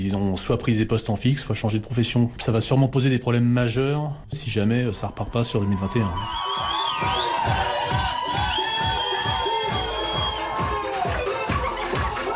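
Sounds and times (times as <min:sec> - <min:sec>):
speech: 0:00.0 - 0:07.7
crowd cheering and whooping: 0:05.5 - 0:12.3
wedding music with a steady driving beat: 0:06.8 - 0:12.3.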